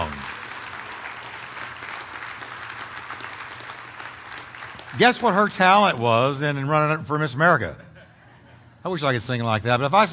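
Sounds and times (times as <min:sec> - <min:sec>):
audience applause: 0:00.0 - 0:05.8
speech: 0:04.9 - 0:07.8, 0:08.8 - 0:10.1
laughter: 0:07.6 - 0:09.2.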